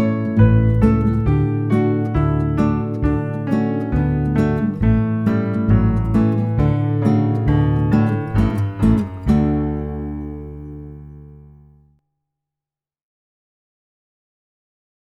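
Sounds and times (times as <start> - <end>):
instrumental music without vocals: 0.0 - 11.9.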